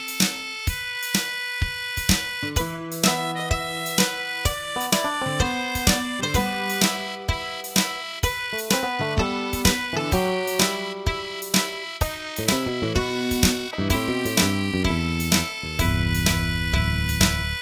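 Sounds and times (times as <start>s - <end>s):
forlorn horn: 0.0s - 17.6s.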